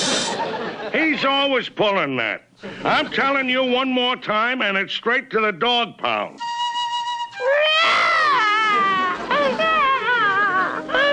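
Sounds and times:
laughter: 0:00.0 - 0:01.2, 0:08.1 - 0:11.1
speech: 0:00.9 - 0:06.5
baby crying: 0:07.3 - 0:11.1.

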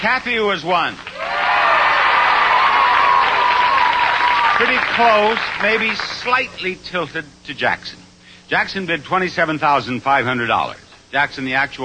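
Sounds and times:
speech: 0:00.0 - 0:01.1, 0:04.6 - 0:11.8
audience applause: 0:01.0 - 0:06.3.

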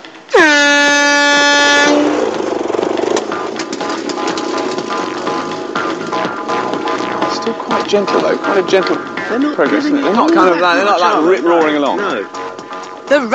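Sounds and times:
air horn blast: 0:00.3 - 0:02.4
busy rumbling clatter: 0:01.8 - 0:09.2
speech: 0:07.8 - 0:12.4, 0:13.1 - 0:13.3.

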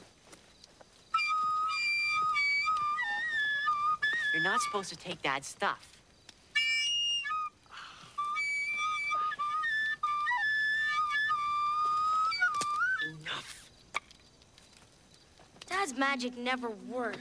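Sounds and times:
flute playing a slow tune: 0:01.1 - 0:05.0, 0:06.5 - 0:13.4
speech: 0:04.4 - 0:05.9, 0:16.0 - 0:17.1.

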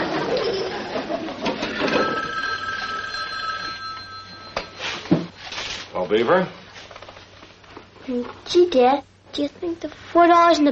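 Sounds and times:
telephone ringing: 0:01.6 - 0:05.1
speech: 0:06.1 - 0:06.6, 0:08.1 - 0:10.7.

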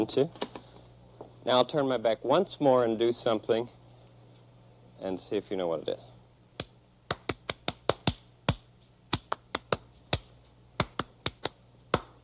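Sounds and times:
speech: 0:00.0 - 0:00.4, 0:01.4 - 0:03.8, 0:05.0 - 0:06.1
hands clapping: 0:06.6 - 0:12.2.

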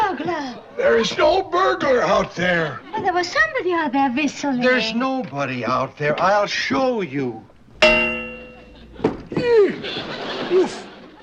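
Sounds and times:
speech: 0:00.5 - 0:08.1, 0:09.7 - 0:10.8
someone bumping into a metal pipe: 0:07.7 - 0:09.4
laughter: 0:08.7 - 0:11.2.

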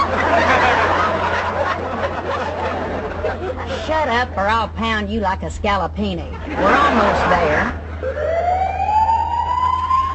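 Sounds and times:
laughter: 0:00.0 - 0:03.9, 0:06.3 - 0:08.3
speech: 0:04.0 - 0:07.8
police car siren wailing: 0:07.9 - 0:10.1.

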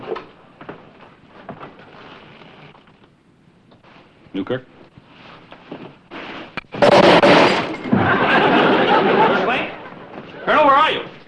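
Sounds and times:
speech: 0:04.4 - 0:04.8
flashbulb dropped and breaking: 0:06.8 - 0:07.9
laughter: 0:07.8 - 0:10.5.

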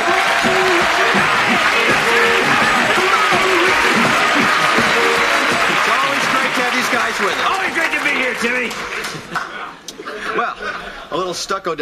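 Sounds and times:
scattered voices and cheers: 0:00.0 - 0:09.0
crowd applauding: 0:00.0 - 0:09.7
speech: 0:11.3 - 0:11.8.

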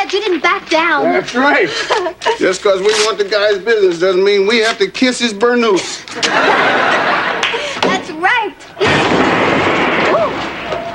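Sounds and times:
speech: 0:00.0 - 0:07.4
laughter: 0:01.6 - 0:02.6, 0:06.0 - 0:07.8
car crash: 0:08.8 - 0:10.9.

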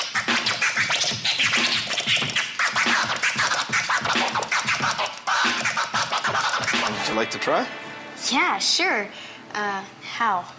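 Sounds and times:
DJ scratching vinyl on turntables: 0:00.0 - 0:07.3
steady beat: 0:00.0 - 0:07.7
speech: 0:07.2 - 0:10.5.

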